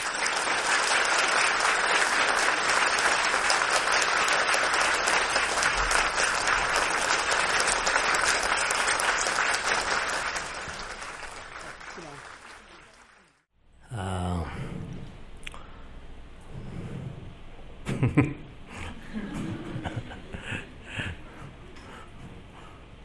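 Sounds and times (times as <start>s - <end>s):
audience applause: 0.0s - 13.5s
laughter: 17.9s - 21.4s.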